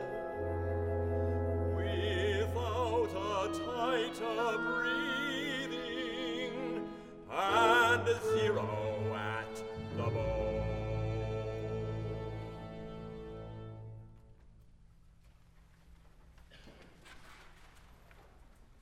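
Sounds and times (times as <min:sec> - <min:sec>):
orchestra: 0:00.0 - 0:14.5.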